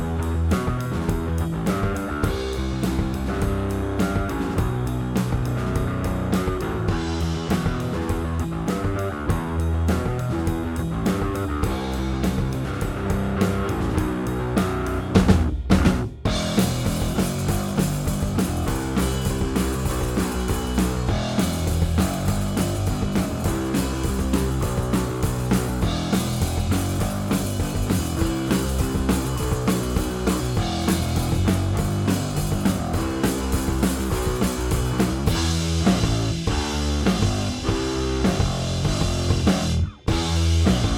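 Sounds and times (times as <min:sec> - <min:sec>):
compressed bass: 0:00.0 - 0:40.9
drums: 0:00.0 - 0:40.9.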